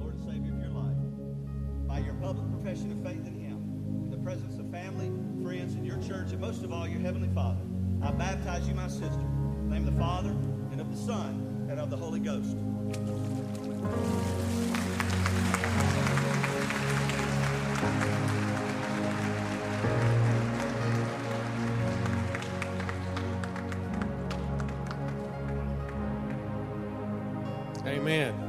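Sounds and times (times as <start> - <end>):
sustained droning music: 0.0 - 28.4
speech: 2.2 - 14.8, 17.8 - 18.4
audience applause after a baptism: 14.0 - 26.5.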